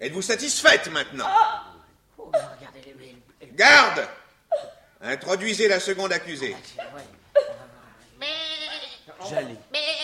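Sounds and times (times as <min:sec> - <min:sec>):
speech: 0:00.0 - 0:01.6, 0:03.6 - 0:04.2, 0:05.0 - 0:07.2, 0:09.2 - 0:10.0
goat bleating: 0:08.2 - 0:10.0.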